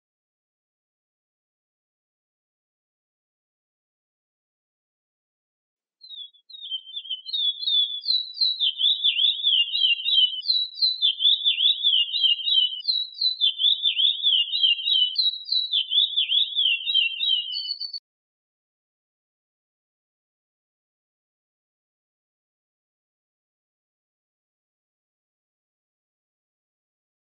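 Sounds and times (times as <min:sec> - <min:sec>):
curió bird singing: 0:06.0 - 0:18.0.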